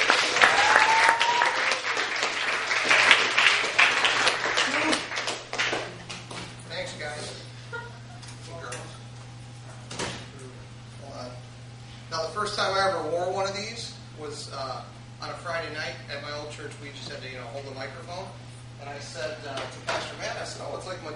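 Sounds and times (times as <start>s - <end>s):
audience applause at a Wednesday church service: 0.0s - 6.0s
people talking: 12.1s - 21.1s.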